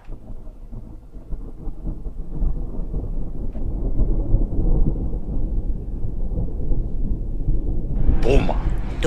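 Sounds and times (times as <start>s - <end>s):
thunder rumbling in a thunderstorm: 0.0s - 9.0s
speech: 8.3s - 9.0s.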